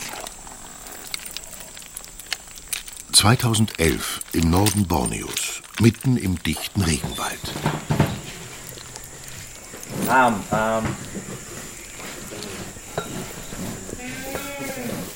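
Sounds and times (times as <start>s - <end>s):
speech: 3.1s - 7.9s, 10.1s - 11.3s
male rhinoceros snorting: 8.4s - 15.1s.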